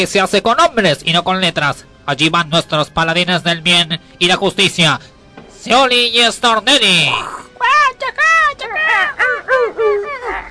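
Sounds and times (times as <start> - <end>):
speech: 0.0 - 8.2
crow cawing: 8.9 - 10.5.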